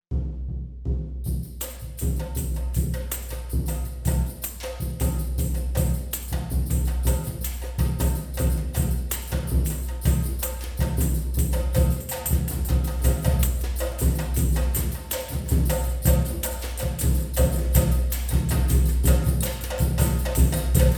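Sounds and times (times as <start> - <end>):
Brazilian percussion: 0.1 - 20.9.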